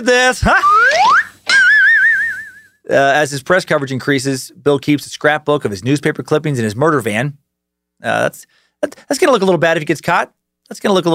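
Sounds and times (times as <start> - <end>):
speech: 0.0 - 1.2, 2.9 - 7.4, 8.0 - 11.1
slide whistle: 0.5 - 2.8.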